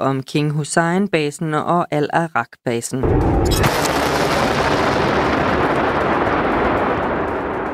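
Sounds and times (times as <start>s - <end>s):
speech: 0.0s - 4.0s
ballistic missile and drone launches: 3.0s - 7.7s.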